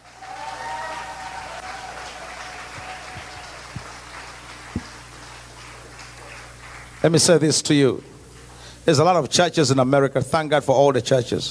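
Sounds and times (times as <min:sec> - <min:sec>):
audience clapping: 0:00.0 - 0:08.5
speech: 0:07.0 - 0:08.1, 0:08.8 - 0:11.5.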